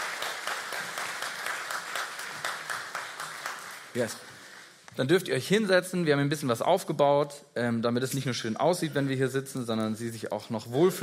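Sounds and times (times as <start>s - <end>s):
audience applauding: 0.0s - 4.7s
speech: 3.9s - 4.3s, 5.0s - 11.0s.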